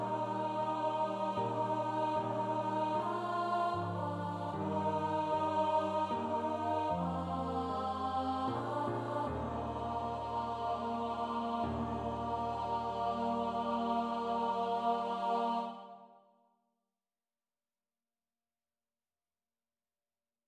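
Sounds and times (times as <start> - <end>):
alto voices: 0.0 - 15.9.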